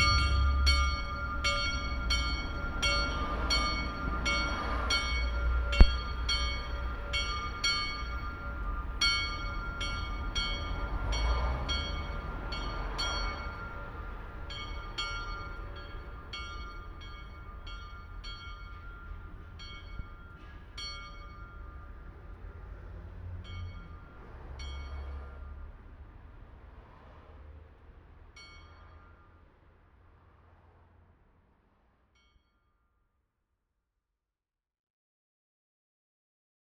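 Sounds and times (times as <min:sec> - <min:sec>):
Kreuzkapelle Wettingen church bell: 0:00.0 - 0:22.6.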